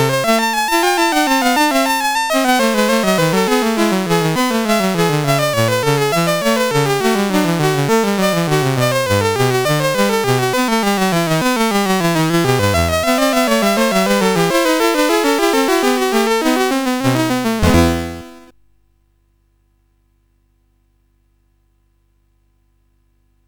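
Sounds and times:
fugue on CSG8580R5 sound chip: 0.0 - 18.5.

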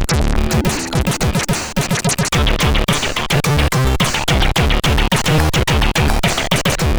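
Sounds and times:
CSG8580 sound chip test: 0.2 - 6.8.

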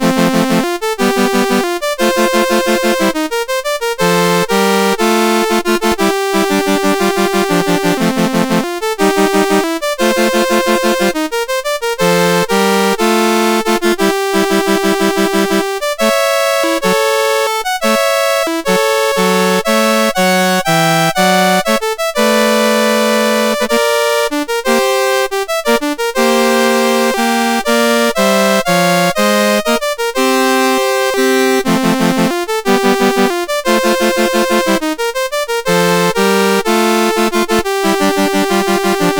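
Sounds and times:
chiptune music on a SID CSG 8580R5 chip: 0.0 - 39.1.

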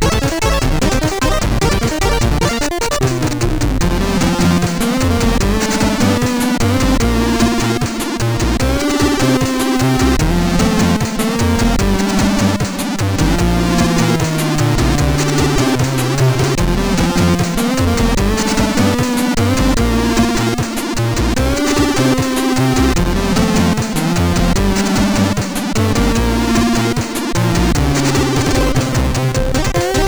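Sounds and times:
birthday melody on a MOS6581R3 sound chip: 0.0 - 30.0.

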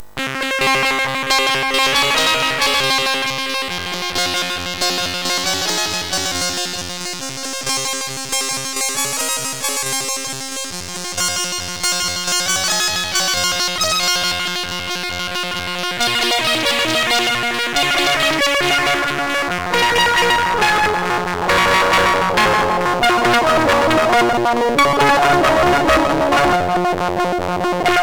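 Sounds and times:
chiptune music on a MOS6581R4 chip: 0.2 - 28.0.

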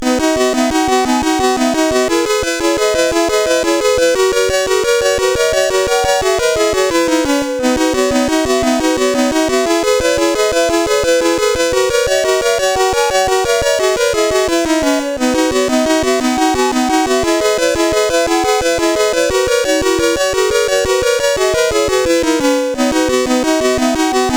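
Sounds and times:
SID CSG8580R5 chip game music: 0.0 - 24.3.

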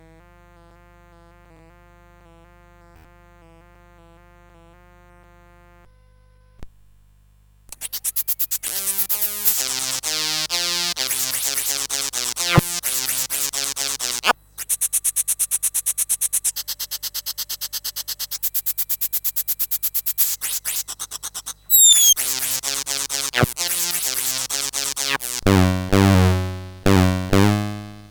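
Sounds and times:
scratch sound on CSG8580R5 sound chip: 8.1 - 10.1, 11.0 - 14.3, 21.7 - 28.0.

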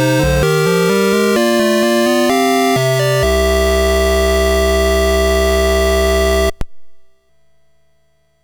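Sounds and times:
SID MOS6581R4 chiptune music: 0.0 - 6.6.

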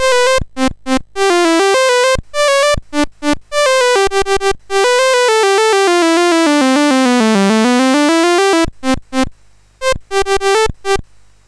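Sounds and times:
MOS6581R4 chip chopper sound: 0.0 - 0.4, 1.2 - 8.7, 9.8 - 11.0.

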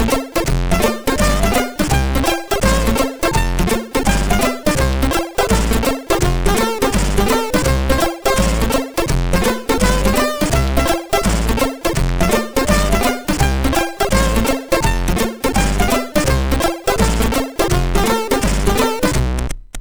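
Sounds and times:
sid sound chip synthesizer: 0.0 - 19.8.

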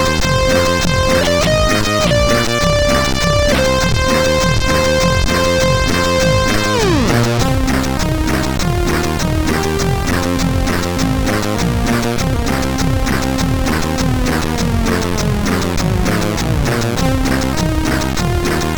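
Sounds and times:
synthesizer sea music on CSG8580R5 sound chip: 0.0 - 18.7.

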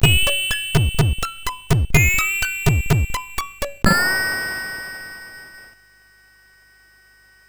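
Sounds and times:
MOS 6581R2 SID chip music: 0.0 - 4.2.

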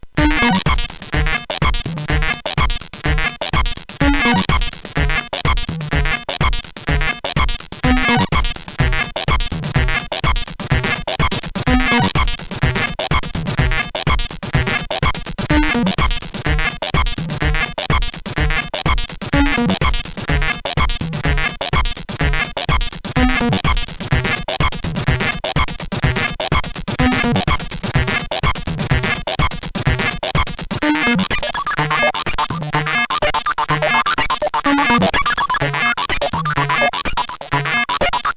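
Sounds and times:
SID chip rise loop on CSG 8580R5: 0.2 - 38.3.

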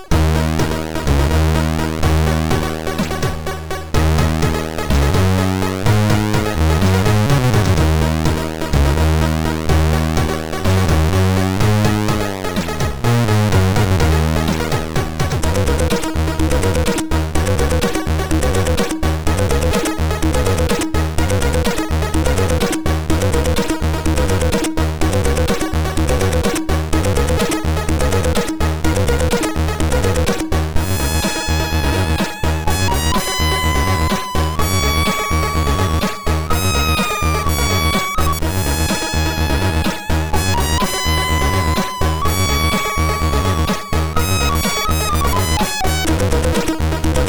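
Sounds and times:
calm intro music on MOS6581R3 SID chip: 0.1 - 47.2.

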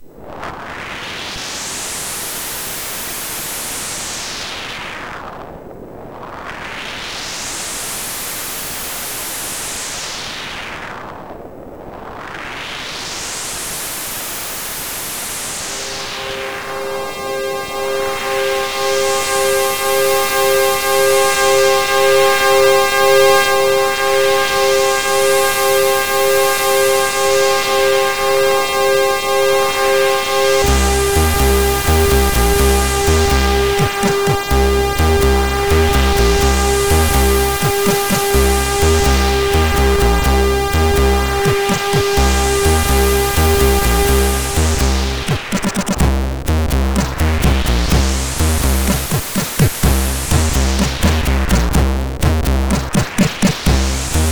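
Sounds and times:
techno music: 15.9 - 54.3.

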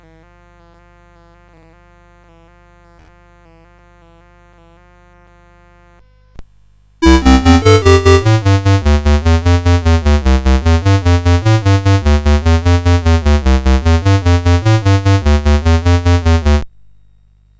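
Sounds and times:
CSG 8580 sound chip: 7.0 - 16.6.

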